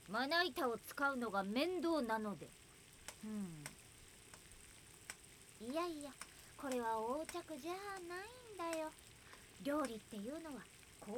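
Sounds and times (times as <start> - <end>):
bacon sizzling in a frying pan: 0.0 - 11.1
speech: 0.1 - 2.6, 3.2 - 3.8, 5.6 - 9.0, 9.6 - 11.1
spatula clicks: 3.0 - 5.2, 6.2 - 10.1.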